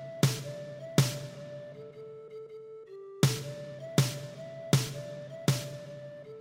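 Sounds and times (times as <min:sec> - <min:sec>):
percussion: 0:00.0 - 0:01.9, 0:03.2 - 0:06.3.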